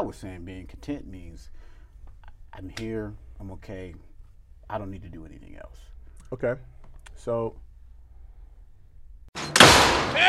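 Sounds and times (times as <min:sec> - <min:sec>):
speech: 0:00.0 - 0:01.7, 0:02.5 - 0:04.1, 0:04.7 - 0:07.6, 0:09.4 - 0:10.2
door slamming: 0:09.4 - 0:10.2.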